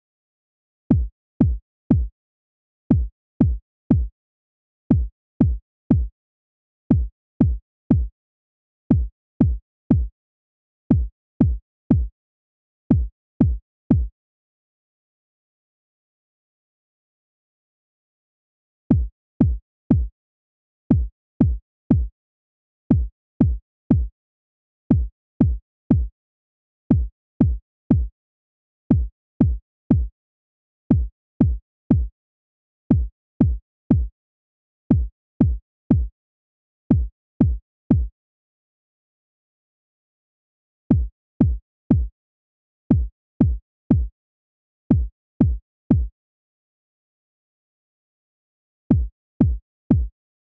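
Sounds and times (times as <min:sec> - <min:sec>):
kick drum: 0:00.9 - 0:02.1, 0:02.9 - 0:04.1, 0:04.9 - 0:06.1, 0:06.9 - 0:08.1, 0:08.9 - 0:10.1, 0:10.9 - 0:12.1, 0:12.9 - 0:14.1, 0:18.9 - 0:20.1, 0:20.9 - 0:22.1, 0:22.9 - 0:24.1, 0:24.9 - 0:26.1, 0:26.9 - 0:28.1, 0:28.9 - 0:30.1, 0:30.9 - 0:32.1, 0:32.9 - 0:34.1, 0:34.9 - 0:36.1, 0:36.9 - 0:38.1, 0:40.9 - 0:42.1, 0:42.9 - 0:44.1, 0:44.9 - 0:46.1, 0:48.9 - 0:50.2.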